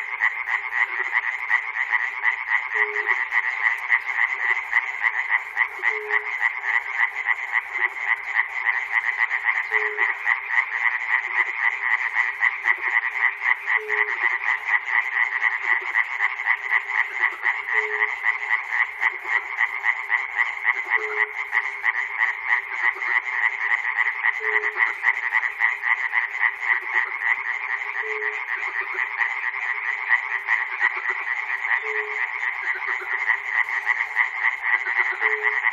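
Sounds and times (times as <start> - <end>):
frogs in Chernobyl: 0.0 - 35.7.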